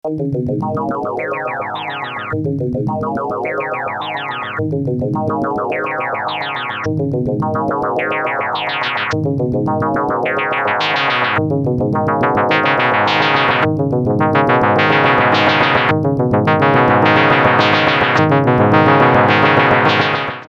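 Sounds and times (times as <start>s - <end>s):
filtered synth sequence: 0.1s - 20.4s.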